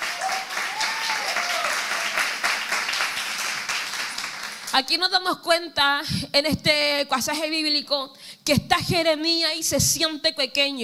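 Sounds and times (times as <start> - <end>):
audience applauding: 0.0 - 4.7
speech: 4.8 - 10.8.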